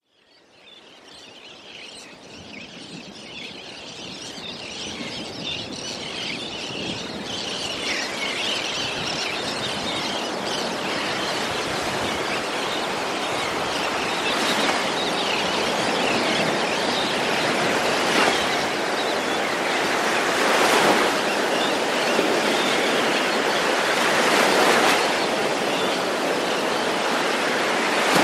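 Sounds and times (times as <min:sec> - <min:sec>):
seagulls: 0:01.2 - 0:28.2
light surf: 0:07.3 - 0:28.2.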